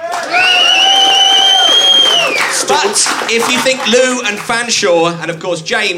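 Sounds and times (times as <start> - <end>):
high sustained whoop: 0.0 - 2.4
audience applauding and cheering: 0.0 - 5.0
speech: 2.8 - 5.9.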